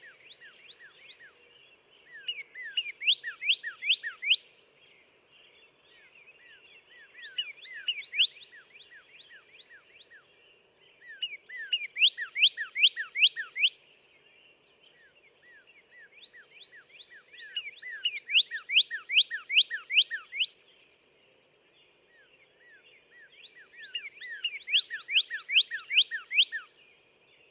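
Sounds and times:
northern cardinal whistled song: 2.2s - 4.4s, 7.3s - 9.0s, 11.2s - 13.8s, 16.3s - 20.6s, 23.5s - 26.7s.

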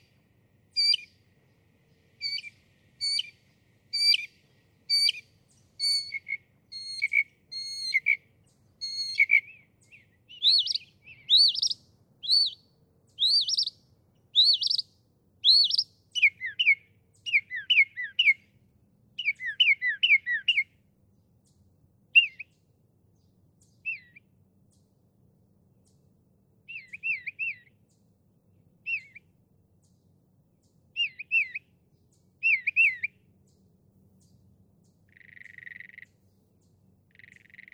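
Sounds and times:
Northern Mockingbird singing: 0.8s - 1.1s, 2.2s - 13.8s, 14.4s - 18.5s, 19.2s - 20.7s, 22.2s - 22.6s, 23.6s - 24.2s, 26.7s - 27.7s, 28.8s - 29.2s, 31.0s - 33.6s, 34.2s - 37.7s.

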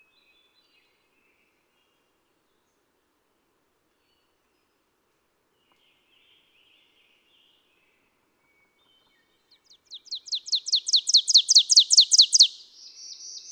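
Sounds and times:
ovenbird call: 9.9s - 13.4s.

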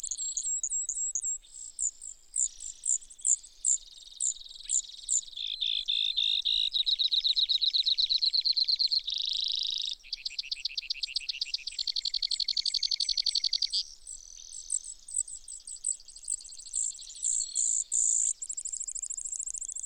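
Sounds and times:
Brewer's sparrow song: 0.0s - 19.8s.

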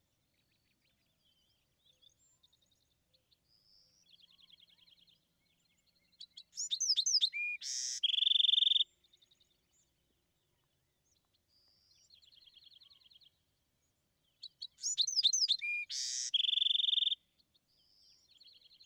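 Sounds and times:
Bewick's wren singing: 6.2s - 8.8s, 14.4s - 17.2s.

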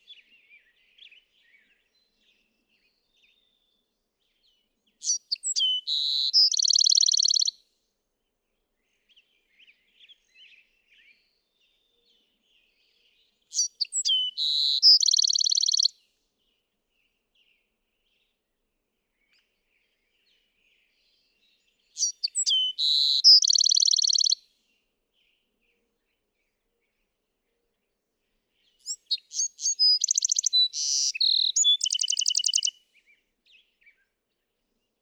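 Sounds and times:
Bewick's wren song: 4.9s - 7.5s, 13.5s - 15.9s, 21.8s - 24.4s, 28.6s - 32.8s.

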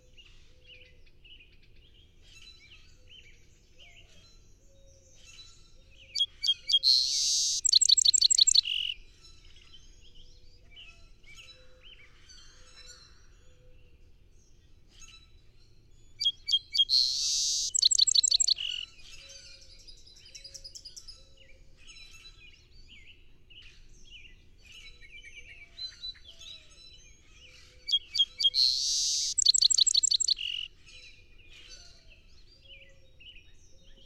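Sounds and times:
Song sparrow song: 0.0s - 34.0s
other birds twittering: 6.0s - 9.0s, 16.0s - 19.1s, 27.4s - 30.7s.

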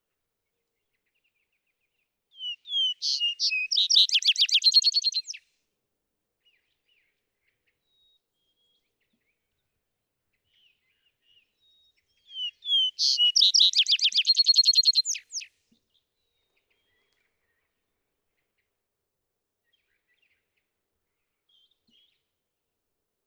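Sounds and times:
vesper sparrow calling: 2.4s - 5.4s, 12.3s - 15.5s.

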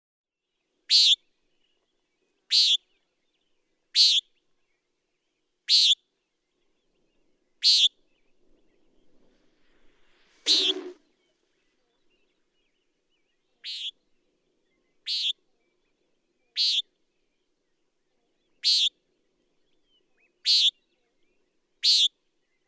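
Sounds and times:
common nighthawk uttering buzzy peents: 0.9s - 1.2s, 2.5s - 2.8s, 4.0s - 4.2s, 5.7s - 6.0s, 7.6s - 7.9s, 10.5s - 11.0s, 15.1s - 15.4s, 16.6s - 16.8s, 18.6s - 18.9s, 20.5s - 20.7s, 21.8s - 22.1s.

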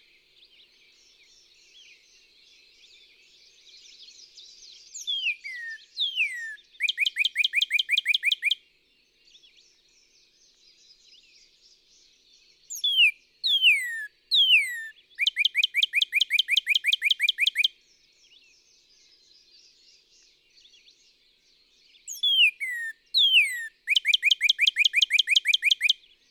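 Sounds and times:
Northern cardinal singing downward-slurred whistles and fast plunging notes: 5.0s - 8.5s, 12.7s - 17.7s, 22.1s - 25.9s.

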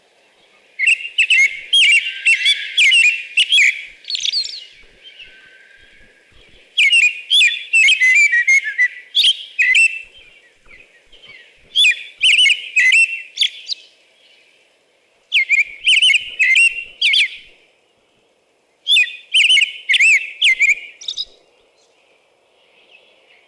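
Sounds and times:
American robin singing: 0.8s - 13.9s, 15.3s - 17.5s, 18.9s - 21.4s.

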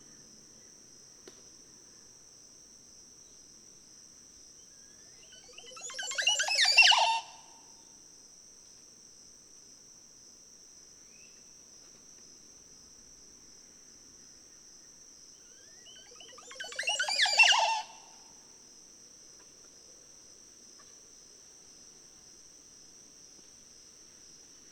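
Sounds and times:
Montezuma oropendola calling: 5.2s - 7.5s, 15.6s - 18.2s.

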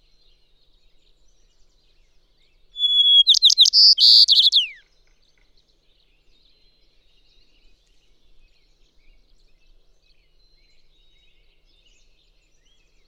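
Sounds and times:
White-crowned Sparrow calling: 2.8s - 4.8s.

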